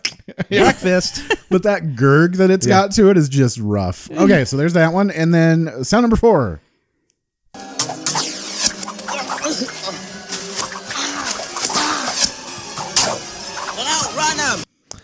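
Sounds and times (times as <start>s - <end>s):
laughter: 0.0s - 1.7s
speech: 0.5s - 6.7s
arrows spearing two characters in a movie scene: 7.7s - 13.8s.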